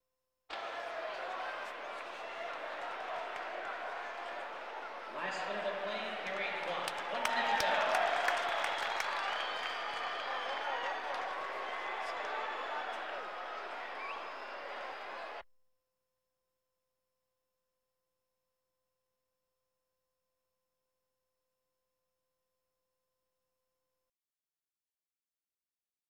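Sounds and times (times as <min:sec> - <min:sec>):
sports crowd: 0:00.5 - 0:15.4.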